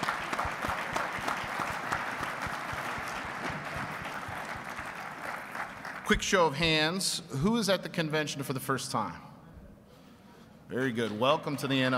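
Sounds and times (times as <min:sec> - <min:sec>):
crowd applause: 0:00.0 - 0:06.3
speech: 0:06.1 - 0:09.3, 0:10.7 - 0:11.9.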